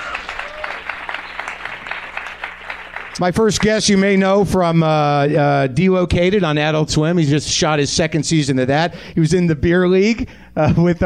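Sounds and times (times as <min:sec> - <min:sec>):
audience applause: 0:00.0 - 0:04.4
speech: 0:03.2 - 0:11.0.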